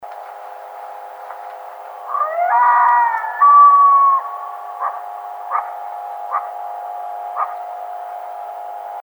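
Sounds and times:
red fox calling: 0:02.0 - 0:07.8.

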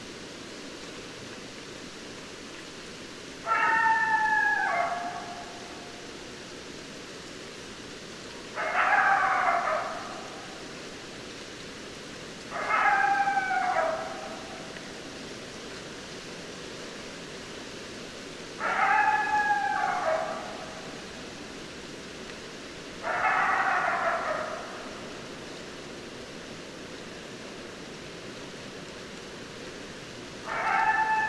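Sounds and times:
hiss: 0:00.0 - 0:31.2
coyote howl: 0:03.4 - 0:06.0, 0:08.6 - 0:10.6, 0:12.5 - 0:14.7, 0:18.6 - 0:21.0, 0:23.0 - 0:25.0, 0:30.4 - 0:31.2.

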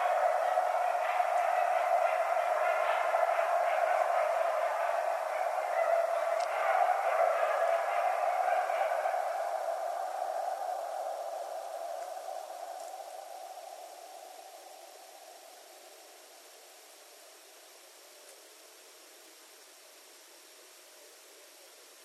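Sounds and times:
coyote howling and yipping: 0:00.0 - 0:14.7.

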